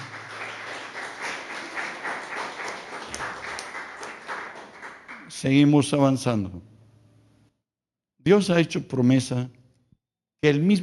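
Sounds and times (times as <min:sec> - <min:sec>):
audience applauding: 0:00.0 - 0:05.4
speech: 0:05.4 - 0:06.7, 0:08.2 - 0:09.6, 0:10.4 - 0:10.8.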